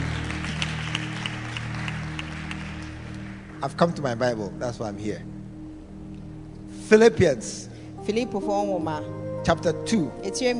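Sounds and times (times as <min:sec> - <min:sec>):
people clapping: 0:00.0 - 0:03.6
speech: 0:03.6 - 0:05.4, 0:06.9 - 0:10.5.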